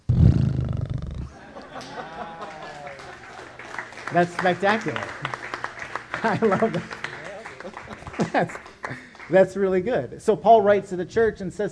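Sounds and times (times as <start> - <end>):
person imitating a horse: 0.0 - 1.3
laughter: 1.2 - 9.1
speech: 4.1 - 5.4, 6.2 - 7.0, 7.6 - 11.6.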